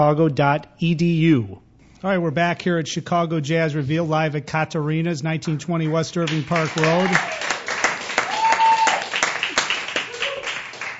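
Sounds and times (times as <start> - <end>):
speech: 0.0 - 7.5
crowd applauding: 6.2 - 10.9.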